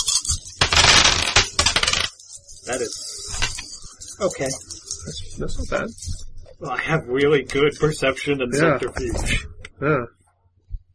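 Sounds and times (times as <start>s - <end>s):
dice rattling in a tabletop game: 0.0s - 6.2s
speech: 2.7s - 3.5s, 4.2s - 10.2s.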